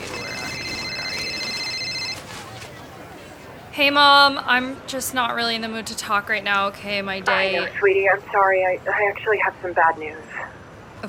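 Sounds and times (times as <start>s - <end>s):
phone ringing: 0.0s - 3.1s
soft murmur of noise: 0.0s - 11.0s
speech: 3.8s - 10.4s.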